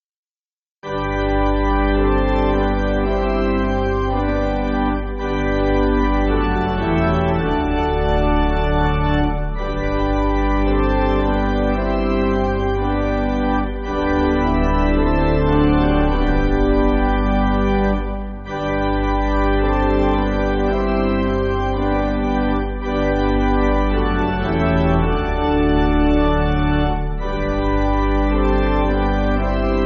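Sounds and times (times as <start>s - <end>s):
pipe organ music backing: 0.8s - 29.8s.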